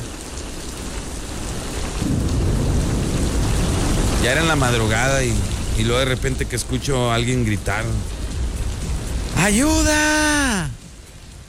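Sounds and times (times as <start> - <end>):
rain: 0.0 - 11.4
thunder: 2.0 - 6.5
speech: 4.2 - 8.2, 9.4 - 10.8.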